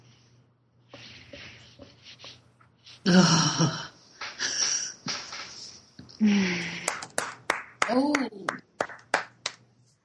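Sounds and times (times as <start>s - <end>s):
speech: 3.1s - 3.8s
one person clapping hands, applauding: 6.6s - 9.6s.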